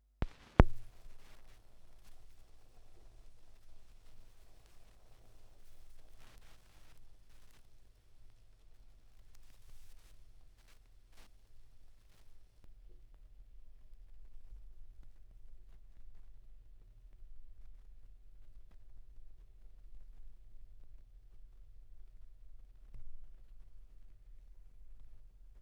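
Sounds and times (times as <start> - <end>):
vinyl record noise at 16 rpm: 0.0 - 25.6.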